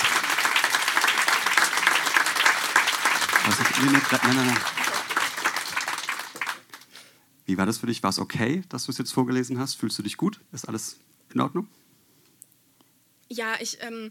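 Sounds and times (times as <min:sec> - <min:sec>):
audience applause: 0:00.0 - 0:06.9
speech: 0:03.8 - 0:04.8, 0:07.5 - 0:11.8, 0:13.3 - 0:14.0.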